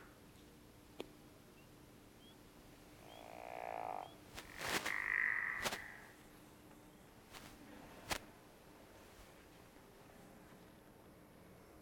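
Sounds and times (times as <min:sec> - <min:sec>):
faint chorus of high peeping frogs: 0:03.0 - 0:06.2
frog giving a creaky descending snore-like call: 0:04.8 - 0:06.1.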